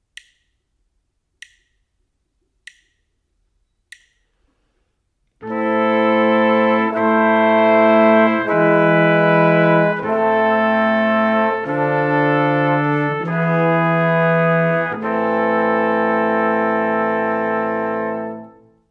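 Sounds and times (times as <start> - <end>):
brass quartet: 5.4 - 18.9.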